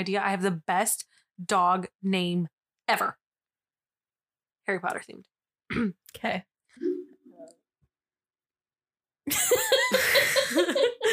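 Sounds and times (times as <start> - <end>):
speech: 0.0 - 3.2, 4.7 - 7.6, 9.3 - 11.1
person sneezing and burping at the same time: 5.7 - 6.1
laughter: 9.3 - 11.1.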